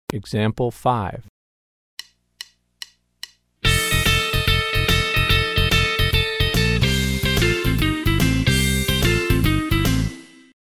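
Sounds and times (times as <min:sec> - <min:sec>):
country rock music: 0:03.6 - 0:10.5.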